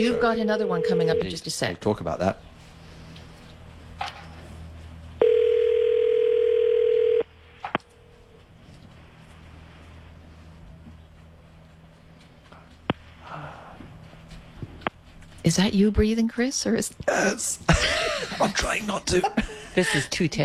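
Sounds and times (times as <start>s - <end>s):
speech: 0.0s - 2.6s, 15.5s - 20.4s
telephone dial tone: 5.2s - 7.3s
laughter: 17.7s - 20.2s.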